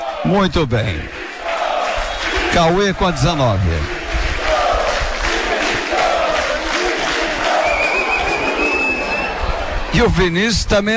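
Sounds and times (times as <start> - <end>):
stadium crowd shouting: 0.0 - 10.4
speech: 0.2 - 1.2, 2.5 - 4.0, 10.0 - 10.9
high whistle-like tone: 7.6 - 9.4.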